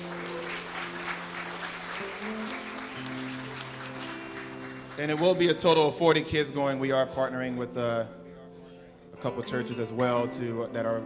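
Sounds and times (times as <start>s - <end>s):
audience clapping: 0.0s - 6.1s
sustained low keyboard or organ chords: 0.0s - 11.0s
speech: 5.0s - 8.2s, 9.2s - 11.0s.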